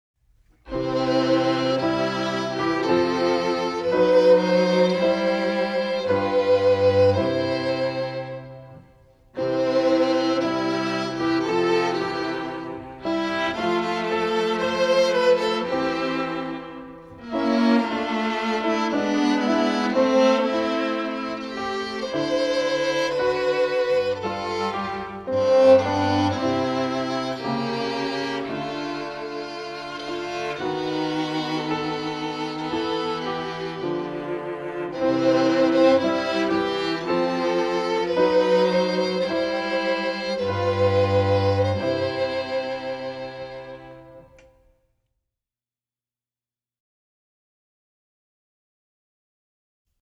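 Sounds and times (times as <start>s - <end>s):
music: 0.2s - 45.0s.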